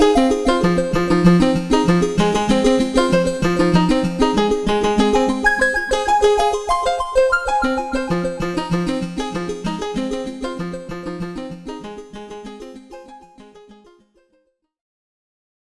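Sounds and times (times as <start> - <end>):
VCO and MIDI synthesizer tones: 0.1 - 11.3.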